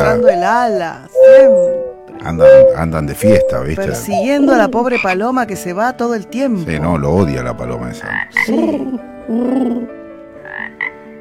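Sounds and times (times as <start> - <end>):
small frog croaking: 0.0 - 5.3, 8.0 - 11.0
speech: 0.1 - 10.0.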